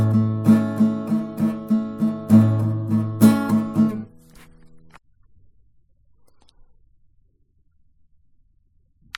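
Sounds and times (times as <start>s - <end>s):
acoustic Christmas music: 0.0s - 5.0s.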